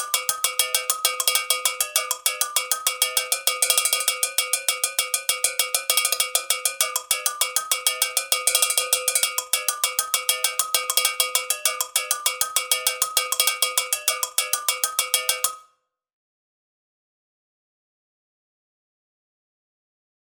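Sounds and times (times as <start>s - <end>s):
world percussion: 0.0s - 15.6s.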